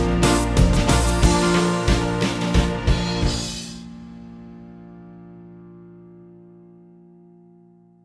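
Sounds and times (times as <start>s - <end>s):
small band playing: 0.0s - 4.1s.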